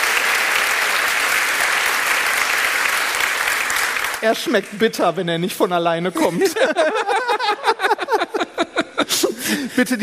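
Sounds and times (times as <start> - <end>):
audience applause: 0.0 - 4.7
speech: 4.2 - 7.9, 9.1 - 10.0
laughter: 6.1 - 10.0.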